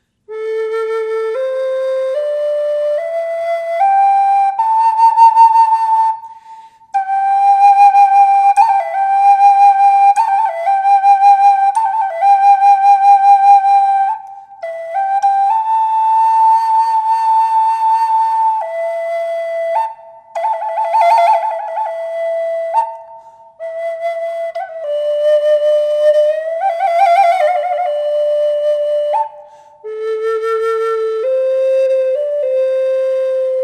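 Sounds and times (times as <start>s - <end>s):
flute with reverb: 0.0s - 33.6s.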